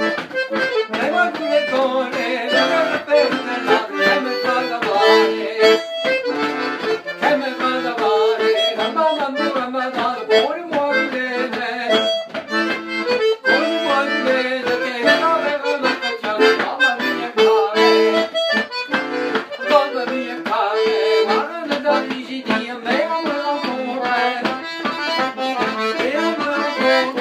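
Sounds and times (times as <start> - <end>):
rhythmic music: 0.0 - 27.1.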